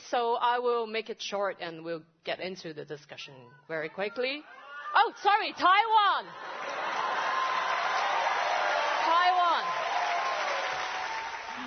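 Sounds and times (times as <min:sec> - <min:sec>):
speech: 0:00.1 - 0:06.7
enthusiastic crowd cheering and applauding at a rally: 0:06.3 - 0:11.6
rising whoop: 0:07.0 - 0:11.6.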